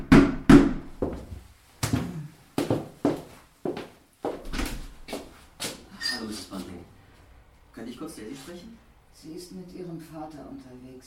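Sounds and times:
footsteps: 0:01.0 - 0:06.8
speech: 0:07.9 - 0:11.0.

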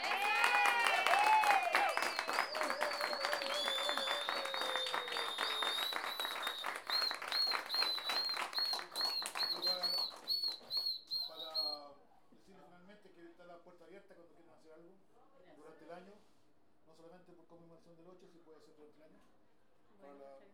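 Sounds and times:
audience applause: 0:00.0 - 0:10.8.

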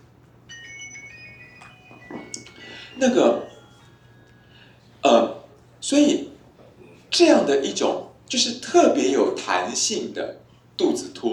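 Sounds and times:
low hum: 0:00.0 - 0:11.3
forgotten mobile phone left switched on playing an electronic ringtone: 0:00.5 - 0:05.5
speech: 0:03.0 - 0:03.5, 0:05.9 - 0:06.3, 0:07.2 - 0:11.3.

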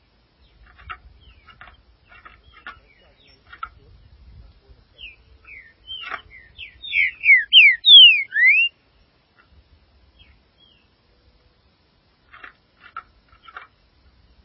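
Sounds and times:
green-winged saltator singing: 0:06.7 - 0:08.7.

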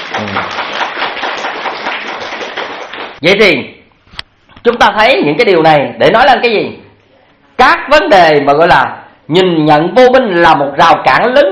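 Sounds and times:
audience applause: 0:00.0 - 0:03.2
speech: 0:00.3 - 0:00.6, 0:03.2 - 0:03.8, 0:04.6 - 0:06.8, 0:07.6 - 0:11.5.

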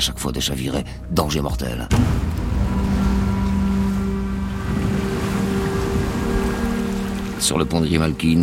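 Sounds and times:
speech: 0:00.0 - 0:02.7, 0:07.4 - 0:08.4
storm waves crashing against a boat: 0:02.0 - 0:07.6.

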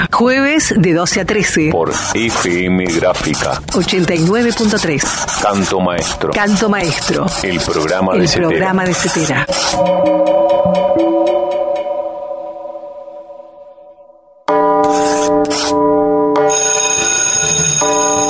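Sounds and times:
speech: 0:00.2 - 0:11.5
bell ringing: 0:09.5 - 0:18.2.

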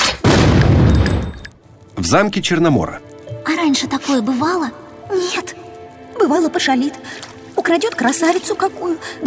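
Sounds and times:
cartoon cannon firing cannonballs: 0:00.2 - 0:01.1
speech: 0:02.1 - 0:05.6, 0:06.2 - 0:09.2.

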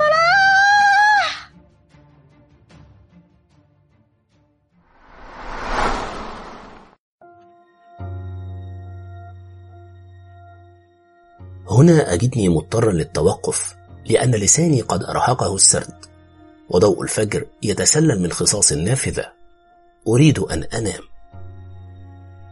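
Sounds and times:
woman screaming in a locked room: 0:00.0 - 0:01.5
rushing whoosh: 0:04.9 - 0:07.0
steady low hum: 0:05.0 - 0:06.9
speech: 0:11.8 - 0:16.1, 0:16.7 - 0:19.4, 0:20.0 - 0:21.1.

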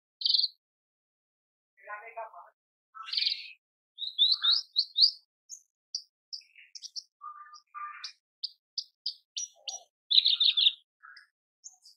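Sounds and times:
Horsfield's bush lark chirping song: 0:00.2 - 0:00.6, 0:03.0 - 0:11.9.

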